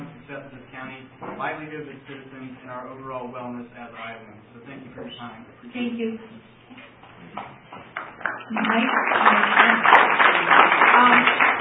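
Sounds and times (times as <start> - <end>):
speech: 0.3 - 11.4
audience applause: 8.0 - 11.5.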